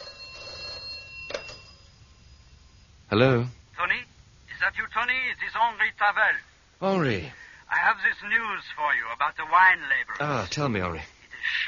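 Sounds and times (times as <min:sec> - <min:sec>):
telephone bell ringing: 0:00.0 - 0:02.9
speech: 0:03.1 - 0:03.6, 0:04.7 - 0:11.6.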